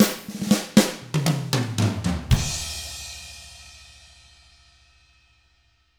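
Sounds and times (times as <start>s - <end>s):
R&B drums in 6-8 time: 0.0s - 3.7s.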